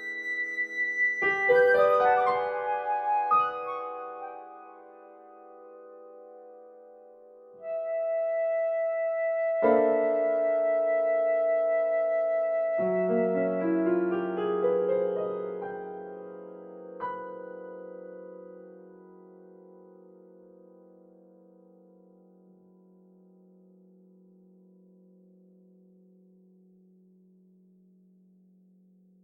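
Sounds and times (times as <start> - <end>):
post-tonal flute: 0.0 - 5.6, 7.6 - 14.8
post-tonal piano: 0.0 - 29.2.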